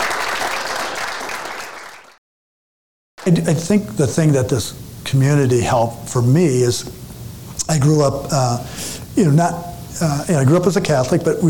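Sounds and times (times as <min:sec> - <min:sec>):
room full of people applauding: 0:00.0 - 0:02.2
speech: 0:03.3 - 0:07.0, 0:07.6 - 0:11.4.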